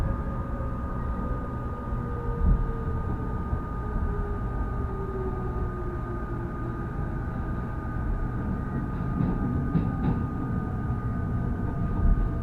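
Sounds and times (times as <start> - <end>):
rapid train on the Uchibo Line rumbling: 0.0 - 12.4.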